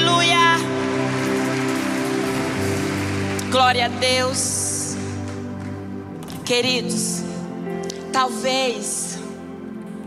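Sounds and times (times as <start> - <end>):
audience applauding: 0.0 - 6.0
speech: 3.5 - 4.6, 6.5 - 7.3, 8.2 - 9.0.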